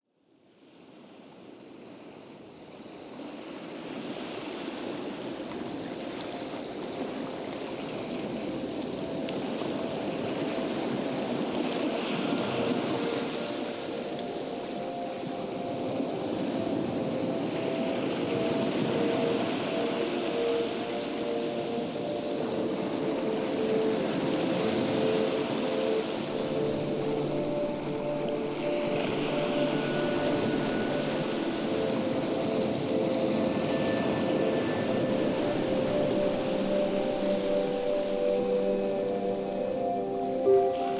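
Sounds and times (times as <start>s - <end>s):
ocean waves: 0.3s - 40.9s
music: 6.0s - 40.9s.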